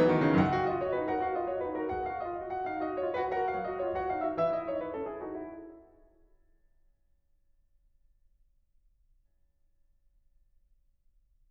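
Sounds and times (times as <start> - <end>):
baroque dance piece: 0.0 - 5.8.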